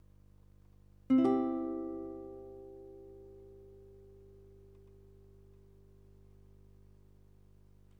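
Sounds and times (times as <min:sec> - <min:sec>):
guitar: 0:01.1 - 0:06.2.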